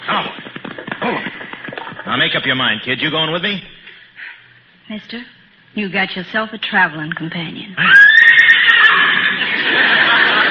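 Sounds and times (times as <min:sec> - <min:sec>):
speech: 0:02.2 - 0:03.7, 0:04.9 - 0:08.0
man imitating a horse whinny: 0:07.8 - 0:09.3
laughter: 0:09.1 - 0:10.5.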